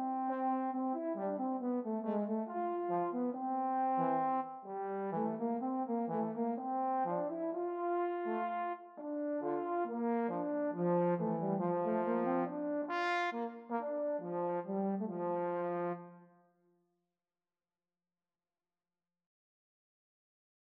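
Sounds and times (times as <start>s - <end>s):
trombone trio playing: 0.0s - 16.0s.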